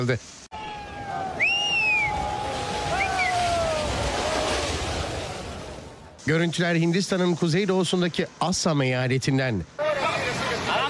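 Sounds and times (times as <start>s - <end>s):
speech: 0.0s - 0.4s, 6.3s - 9.8s
monsoon flood water rushing in Assam India: 0.3s - 10.8s
high whistling chirps: 1.4s - 2.2s.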